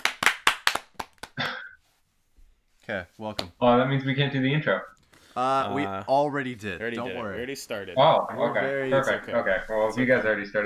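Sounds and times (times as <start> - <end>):
hand clapping: 0.0 - 1.8
speech: 2.9 - 10.6.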